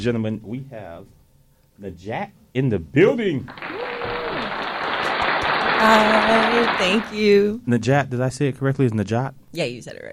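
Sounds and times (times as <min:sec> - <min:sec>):
speech: 0:00.0 - 0:01.2, 0:01.8 - 0:03.8, 0:05.8 - 0:10.1
studio audience applause for a guest: 0:03.5 - 0:07.3.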